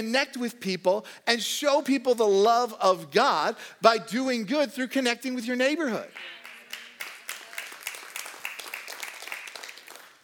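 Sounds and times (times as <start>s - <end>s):
speech: 0.0s - 6.4s
crowd applause: 6.3s - 10.2s.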